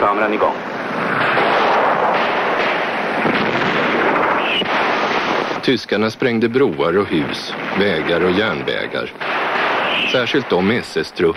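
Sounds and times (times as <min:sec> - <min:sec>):
speech: 0:00.2 - 0:01.2, 0:05.7 - 0:09.4, 0:10.0 - 0:11.3
direct gunfire in battle: 0:00.6 - 0:05.7, 0:07.0 - 0:11.3
ricochets whizzing around Swedish observers: 0:00.9 - 0:05.6, 0:09.2 - 0:10.4.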